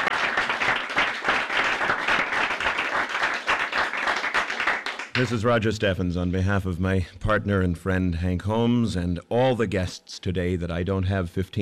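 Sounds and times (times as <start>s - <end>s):
audience applause: 0.0s - 5.4s
speech: 5.2s - 11.6s.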